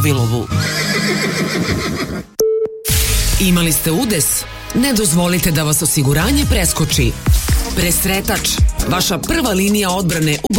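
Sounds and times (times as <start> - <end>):
speech: 0.0 - 2.3, 3.4 - 10.5
horse neighing: 0.5 - 2.3.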